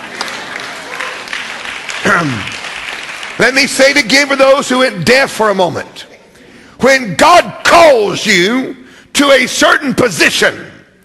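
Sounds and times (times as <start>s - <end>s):
audience clapping: 0.0s - 4.4s
speech: 2.0s - 2.6s, 3.4s - 6.1s, 6.8s - 10.7s.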